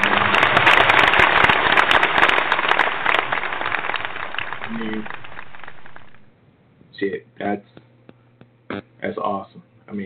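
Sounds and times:
applause: 0.0s - 6.3s
speech: 7.0s - 7.7s, 9.1s - 10.0s.

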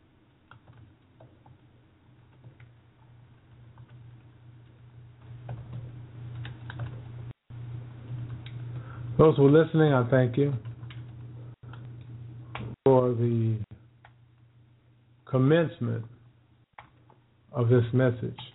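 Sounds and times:
low steady hum: 0.0s - 18.5s
typing on a computer keyboard: 0.5s - 1.6s, 3.5s - 4.2s, 5.4s - 7.0s, 10.6s - 11.8s
speech: 9.2s - 10.7s, 13.1s - 13.7s, 15.3s - 16.2s, 17.6s - 18.5s.

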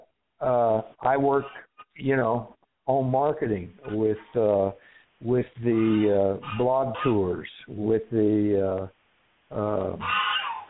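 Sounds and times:
speech: 0.4s - 10.3s
domestic geese honking outside: 5.7s - 7.3s, 10.0s - 10.6s.

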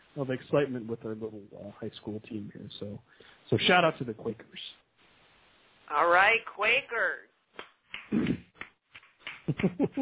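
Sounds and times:
speech: 0.2s - 4.8s, 5.9s - 8.5s, 9.5s - 9.9s
slow clapping: 7.6s - 9.8s.

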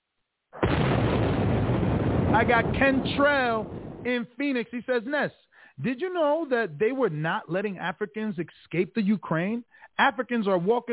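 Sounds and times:
bomb explosion sound effect: 0.6s - 4.3s
speech: 2.4s - 10.9s.

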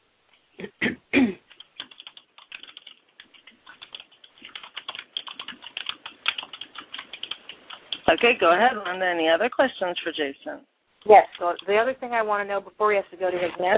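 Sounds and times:
typing on a computer keyboard: 1.4s - 9.2s, 11.3s - 11.9s
speech: 8.1s - 13.7s.

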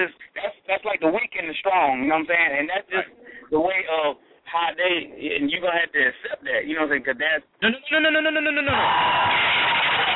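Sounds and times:
speech: 0.0s - 0.3s, 1.0s - 10.1s
canned crowd-cheer and applause sound effect from a soundboard button: 8.7s - 10.1s.

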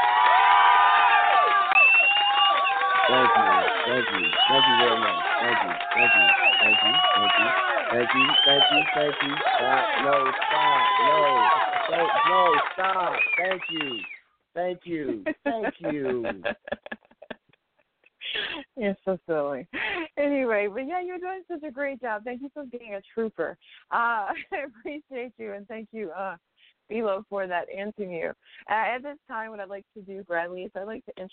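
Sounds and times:
applause sound effect of a crowd cheering and shouting: 0.0s - 13.2s
laughter: 3.1s - 12.6s, 14.8s - 17.5s
speech: 3.1s - 17.0s, 18.8s - 31.3s.

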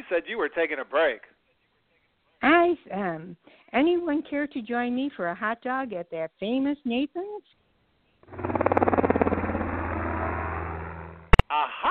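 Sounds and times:
speech: 0.1s - 1.4s, 2.4s - 7.6s, 8.3s - 8.6s
helicopter flying overhead: 8.2s - 11.4s.

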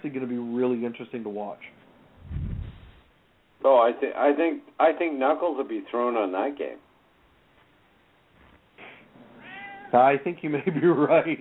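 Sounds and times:
hiss: 0.0s - 11.3s
speech: 0.1s - 2.5s, 3.6s - 6.8s, 9.9s - 11.3s
cat meowing: 9.4s - 10.0s.

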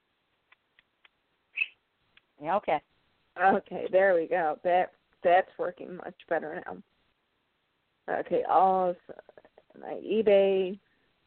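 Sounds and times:
pet bird squawking: 1.6s - 1.8s
speech: 2.4s - 6.9s, 8.1s - 10.8s.

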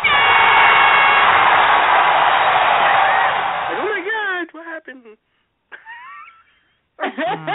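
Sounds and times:
crowd cheering sound effect: 0.0s - 4.0s.

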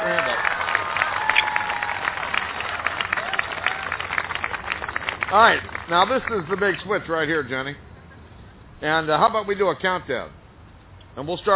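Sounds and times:
crowd voices and cheers: 0.0s - 4.3s
audience applause: 0.0s - 6.8s
speech: 5.3s - 7.9s, 8.8s - 10.4s, 11.2s - 11.5s.

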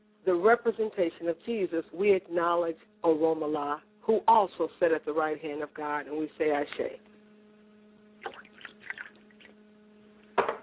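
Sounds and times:
speech: 0.3s - 7.1s
liquid poured as libation: 8.2s - 9.6s.

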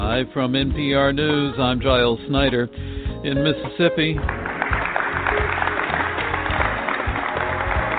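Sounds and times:
speech: 0.2s - 4.4s
warehouse workers applauding in Olive Branch, Mississippi: 4.2s - 7.9s.

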